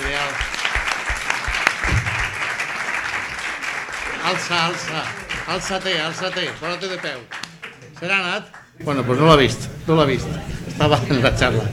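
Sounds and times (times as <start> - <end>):
crowd applauding: 0.0 - 8.8
speech: 4.3 - 7.4, 8.0 - 11.7.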